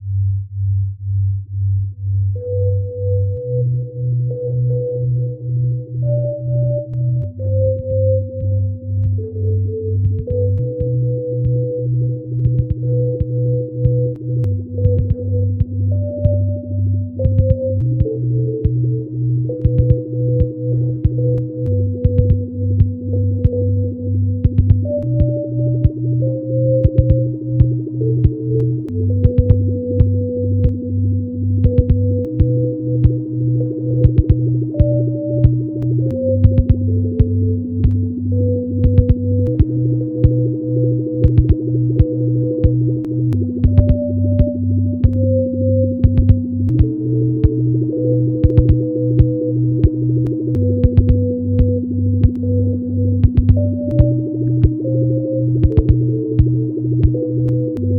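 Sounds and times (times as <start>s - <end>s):
sine wave tone: 0.0s - 57.9s.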